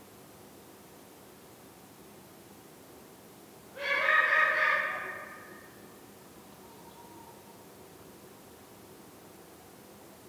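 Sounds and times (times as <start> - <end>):
Eurasian eagle-owl call: 3.8 - 5.8, 6.6 - 7.4.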